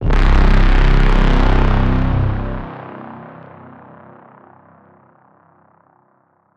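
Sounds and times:
evil god braam in C: 0.0 - 3.6.

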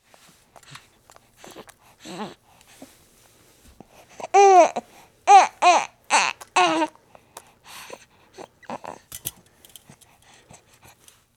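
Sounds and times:
baby crying: 4.3 - 6.9.

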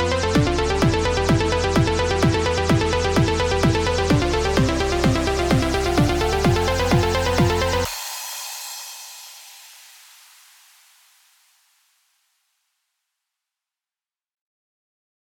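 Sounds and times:
EDM intro: 0.0 - 11.4.

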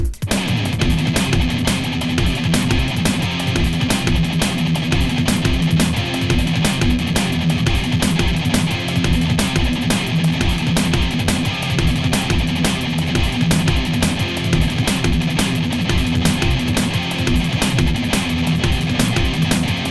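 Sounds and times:
metal music: 0.1 - 19.9.

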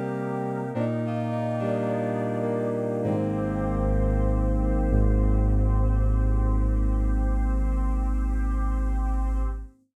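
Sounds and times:
dark intro music: 0.2 - 9.7.

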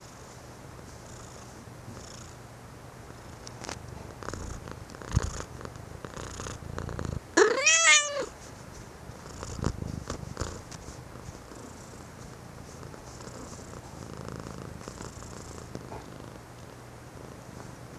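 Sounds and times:
Domestic cat purring: 0.8 - 2.4, 3.1 - 8.4, 9.1 - 17.9
Domestic cat meowing: 7.4 - 8.3.

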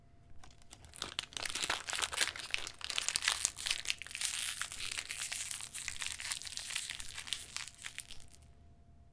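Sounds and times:
oatmeal cookie wrapper: 0.4 - 8.4.

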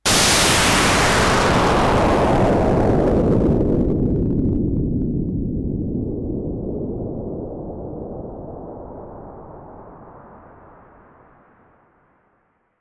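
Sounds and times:
giant explosion: 0.0 - 7.6.

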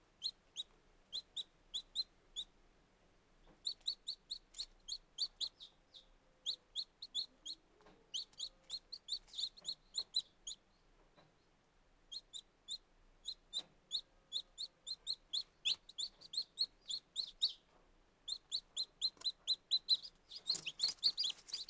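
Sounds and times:
very young chicken chicks peeping: 0.2 - 2.6, 3.4 - 11.4, 12.0 - 21.6.

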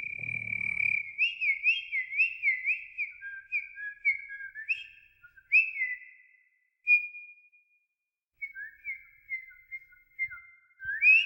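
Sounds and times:
bird whistling in a rainforest: 0.0 - 6.1, 8.6 - 11.2.

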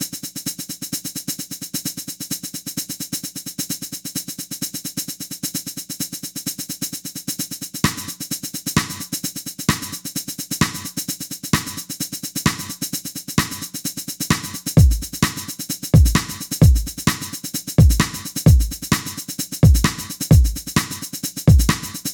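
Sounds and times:
drum roll: 7.8 - 10.0, 10.6 - 22.1.

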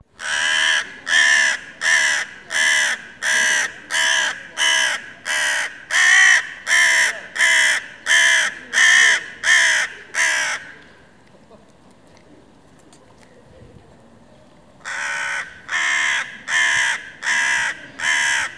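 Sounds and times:
crow cawing: 0.2 - 10.8, 14.8 - 18.5.

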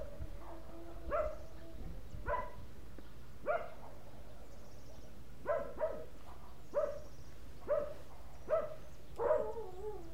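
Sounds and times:
dogs barking in the countryside: 0.4 - 1.5, 2.2 - 2.6, 3.4 - 4.4, 5.4 - 10.1.

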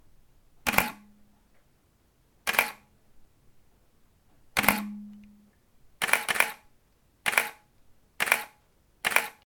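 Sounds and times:
Canon 5D Mark II camera shutter: 0.7 - 1.1, 2.4 - 2.9, 4.6 - 5.0, 6.0 - 9.4.

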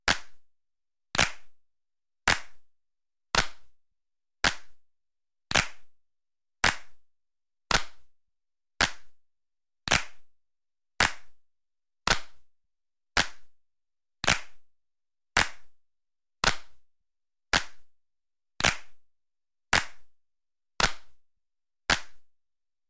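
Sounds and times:
hands clapping: 0.1 - 0.4, 1.2 - 1.6, 2.3 - 2.6, 3.4 - 3.7, 4.4 - 4.8, 5.5 - 5.9, 6.6 - 7.0, 7.7 - 8.1, 8.8 - 9.2, 9.9 - 10.3, 11.0 - 11.4, 12.1 - 12.4, 13.2 - 13.5, 14.2 - 14.6, 15.4 - 15.8, 16.4 - 16.8, 17.5 - 17.9, 18.6 - 19.0, 19.7 - 20.1, 20.8 - 21.2, 21.9 - 22.3.

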